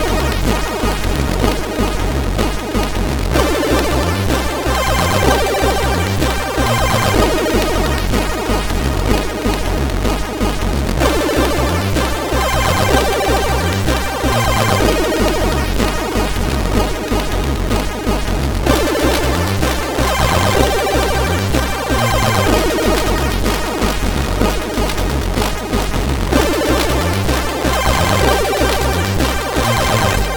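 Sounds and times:
music from CSG8580R5 sound chip: 0.0s - 30.3s.

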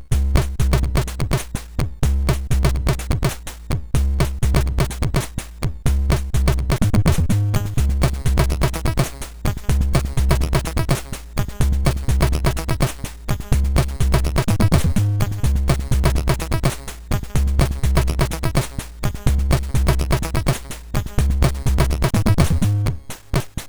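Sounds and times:
chill chiptune music on a SID MOS6581R2 chip: 0.1s - 1.5s, 2.1s - 23.6s.

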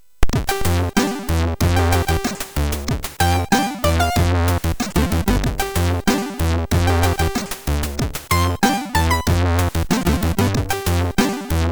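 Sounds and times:
SID MOS6581R3 chip instruments: 0.4s - 11.7s.

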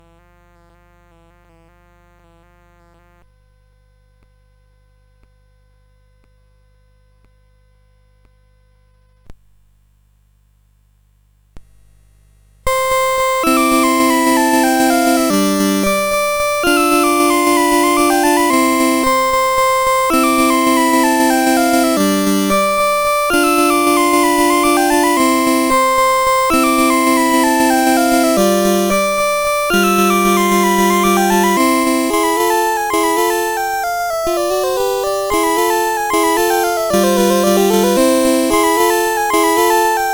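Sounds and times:
waltz: 12.7s - 40.1s.

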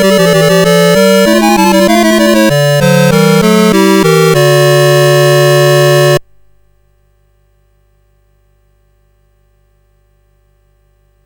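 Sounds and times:
fugue played on CSG8580 sound chip: 0.0s - 6.2s.

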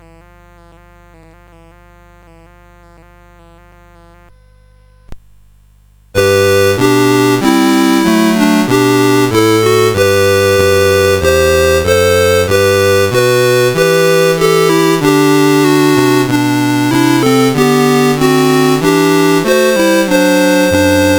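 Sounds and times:
evening hymn melody on CSG8580 chip: 6.2s - 21.1s.

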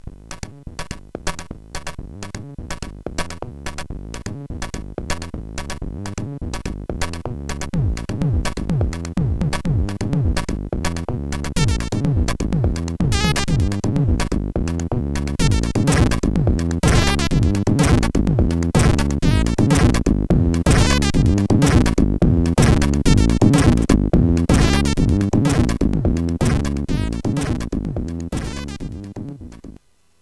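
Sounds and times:
SID CSG8580 chip music: 7.2s - 29.8s.

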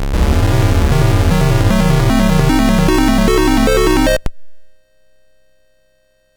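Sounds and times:
SID MOS6581R4 chiptune music: 0.2s - 4.3s.

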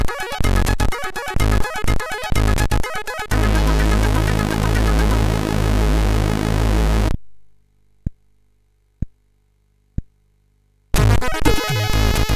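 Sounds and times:
rolling chiptune melody on SID MOS6581R3: 0.0s - 7.1s, 11.0s - 12.3s.

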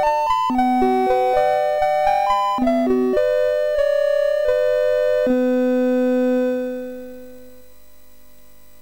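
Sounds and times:
MOS6581R3 SID chip game music: 0.0s - 6.8s.

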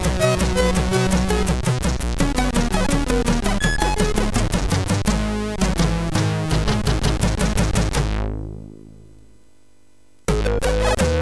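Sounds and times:
SID chiptune music on MOS6581 sound chip: 0.0s - 8.0s, 10.3s - 11.1s.

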